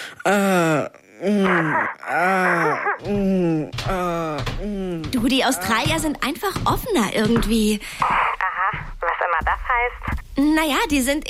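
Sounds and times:
voice imitating sex moaning: 0:00.2 - 0:05.7
speech: 0:00.2 - 0:08.2, 0:09.4 - 0:11.2.

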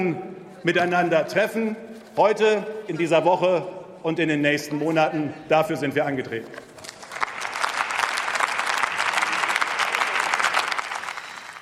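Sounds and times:
speech: 0:00.0 - 0:06.6
parliamentary applause: 0:06.8 - 0:11.6.

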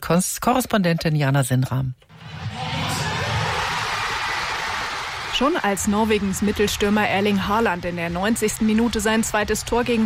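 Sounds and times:
speech: 0:00.1 - 0:02.4, 0:05.4 - 0:10.0
thousands of football fans cheering in central Oslo: 0:02.1 - 0:10.0.

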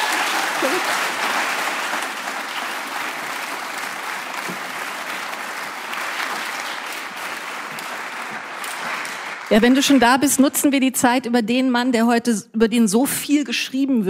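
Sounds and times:
audience applause: 0:00.0 - 0:10.3
speech: 0:00.6 - 0:01.1, 0:09.5 - 0:14.0.

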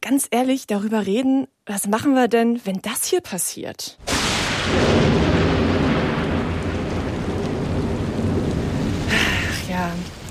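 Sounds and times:
speech: 0:00.1 - 0:04.1, 0:04.7 - 0:05.3
rain hiss: 0:04.0 - 0:10.2
thunderclap during a summer thunderstorm: 0:04.0 - 0:10.2.

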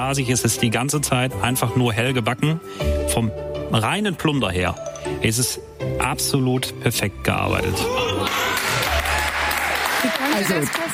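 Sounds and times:
speech: 0:00.0 - 0:08.4, 0:10.4 - 0:10.9
applause: 0:08.2 - 0:10.9.

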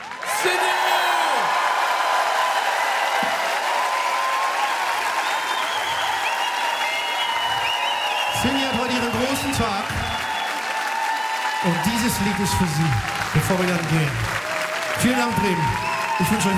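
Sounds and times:
audience applause: 0:00.0 - 0:16.5
speech: 0:00.4 - 0:00.8, 0:12.0 - 0:14.4, 0:15.0 - 0:16.5.

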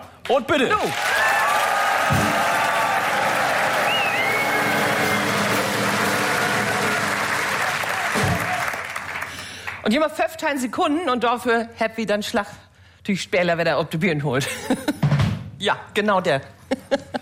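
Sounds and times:
speech: 0:00.3 - 0:01.2, 0:09.8 - 0:15.0, 0:15.6 - 0:17.1
audience applause: 0:00.8 - 0:09.8.

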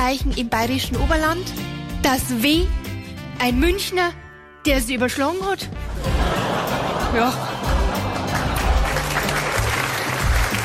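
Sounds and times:
speech: 0:00.1 - 0:05.9, 0:07.1 - 0:07.5
laughter: 0:05.9 - 0:10.6
clapping: 0:07.8 - 0:10.6.

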